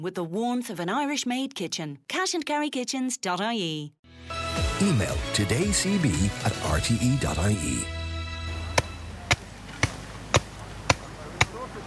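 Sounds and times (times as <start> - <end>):
speech: 0.0 - 8.0
axe strikes as a hedge is laid: 8.8 - 11.6.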